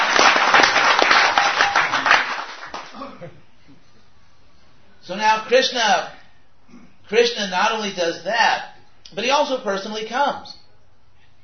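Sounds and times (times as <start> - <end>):
audience round of applause: 0.0 - 3.0
speech: 5.1 - 6.2, 7.1 - 10.6.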